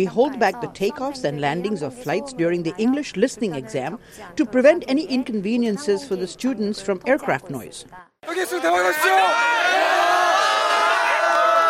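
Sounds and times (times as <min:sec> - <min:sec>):
speech: 0:00.0 - 0:10.0
sophomores and juniors shouting good luck: 0:08.2 - 0:11.6
students cheering for exam takers: 0:08.3 - 0:11.6.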